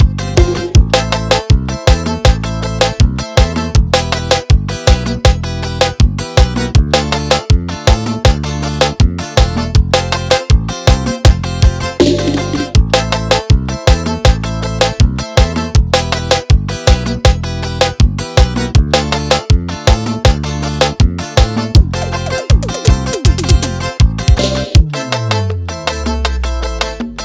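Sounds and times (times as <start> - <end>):
piseiro dance music: 0.0 - 27.2.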